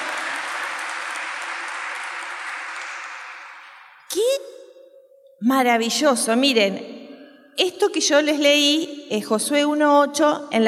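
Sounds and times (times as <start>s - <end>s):
crowd clapping: 0.0s - 4.1s
speech: 5.4s - 6.9s, 7.8s - 10.6s.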